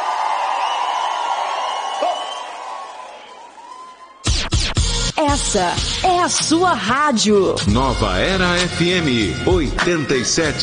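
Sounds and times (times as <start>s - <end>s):
audience applause and cheering: 0.0s - 4.4s
speech: 5.4s - 10.6s.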